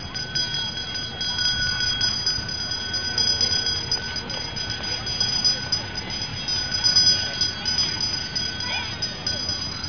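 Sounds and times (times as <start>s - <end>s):
people: 0.0s - 9.8s.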